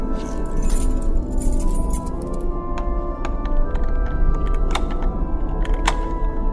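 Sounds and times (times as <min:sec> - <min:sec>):
old brass key unlocking a large wooden door: 0:00.2 - 0:02.5, 0:03.7 - 0:06.3.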